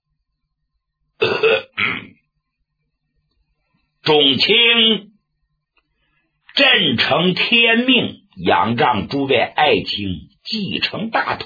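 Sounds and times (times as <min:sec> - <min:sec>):
imitated throat-clearing cough: 0:01.2 - 0:02.2
speech: 0:04.1 - 0:05.1, 0:06.6 - 0:11.4.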